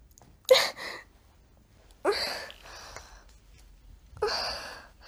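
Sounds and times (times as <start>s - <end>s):
woman moaning: 0.5s - 1.0s, 2.1s - 2.6s, 4.2s - 4.8s.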